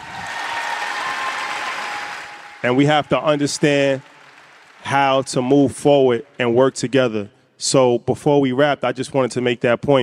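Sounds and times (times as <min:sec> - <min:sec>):
audience clapping during a speech about forgiveness: 0:00.0 - 0:06.6
speech: 0:02.6 - 0:04.1, 0:04.8 - 0:10.0.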